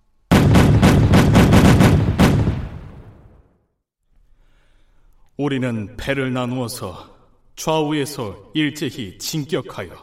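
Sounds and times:
naval cannon fire: 0:00.3 - 0:03.5
speech: 0:05.4 - 0:10.0.

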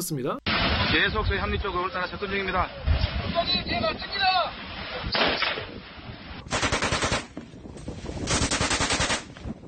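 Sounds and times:
speech: 0:00.0 - 0:06.6
M60 machine gun firing at Chinese fishing boats at sea: 0:06.5 - 0:07.3, 0:08.3 - 0:09.3.

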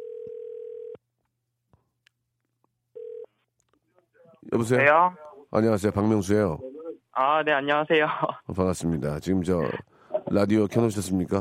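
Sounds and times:
telephone line tone: 0:00.0 - 0:01.0, 0:03.0 - 0:03.3
speech: 0:04.5 - 0:11.4.

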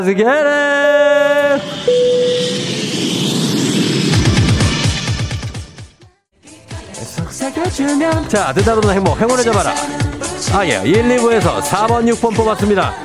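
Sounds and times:
speech: 0:00.0 - 0:01.0, 0:07.5 - 0:13.0
airplane takeoff jet-engine roar sound effect: 0:00.9 - 0:05.8
short tonal chime: 0:01.5 - 0:03.3.

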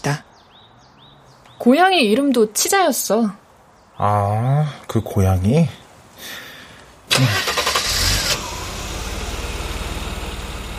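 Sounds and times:
speech: 0:00.0 - 0:00.3, 0:01.6 - 0:03.4, 0:04.0 - 0:06.4, 0:07.2 - 0:07.5
car engine starting: 0:07.1 - 0:10.7.

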